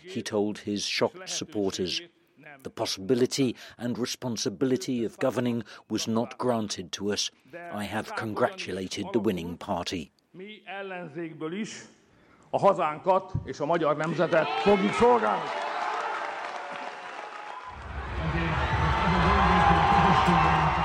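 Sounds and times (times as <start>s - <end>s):
speech: 0.0s - 15.7s
huge crowd cheering on the shores of the Danube: 14.0s - 20.8s.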